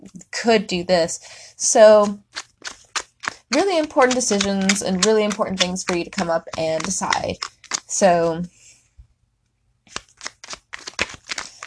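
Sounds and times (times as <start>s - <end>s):
speech: 0.4s - 2.2s, 3.5s - 8.6s
Rider-Waite tarot cards shuffling: 1.7s - 8.5s, 9.9s - 11.6s.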